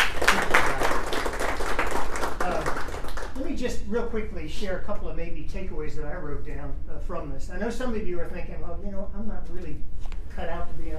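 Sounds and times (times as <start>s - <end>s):
audience applause: 0.0s - 3.4s
speech: 3.6s - 10.9s.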